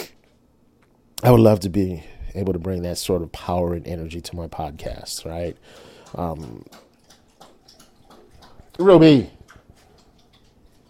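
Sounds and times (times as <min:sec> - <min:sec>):
speech: 0:01.2 - 0:06.8, 0:08.8 - 0:09.4
dog lapping water from a bowl: 0:03.4 - 0:10.8.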